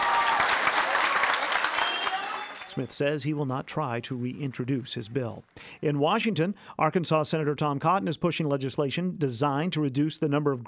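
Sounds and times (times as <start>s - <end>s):
bill opponents cheering and applauding in a committee room hallway: 0.0s - 2.9s
speech: 2.8s - 10.6s.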